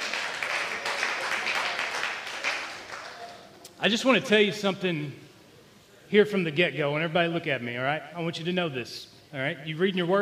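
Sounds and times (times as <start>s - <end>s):
audience clapping: 0.0s - 3.7s
speech: 3.8s - 5.2s, 6.1s - 10.1s.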